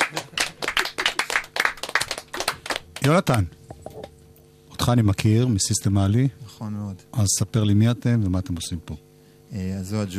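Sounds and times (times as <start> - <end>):
crowd clapping: 0.0 - 3.5
speech: 3.0 - 3.6, 4.8 - 10.1.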